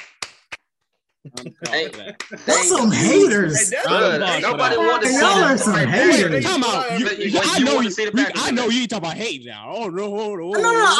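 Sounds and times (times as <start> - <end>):
big applause: 0.0 - 0.6, 1.3 - 2.4
speech: 1.2 - 10.9
laughter: 1.3 - 7.8.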